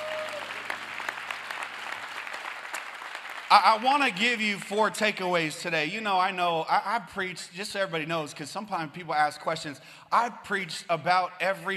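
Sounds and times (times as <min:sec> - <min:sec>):
audience round of applause: 0:00.0 - 0:04.9
speech: 0:03.5 - 0:11.7.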